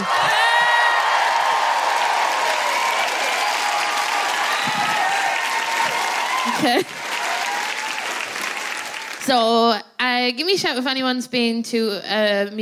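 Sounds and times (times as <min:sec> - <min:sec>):
comedy show audience applauding, cheering and whooping as a comedian takes the stage: 0:00.0 - 0:09.3
speech: 0:06.6 - 0:07.0, 0:09.3 - 0:12.6.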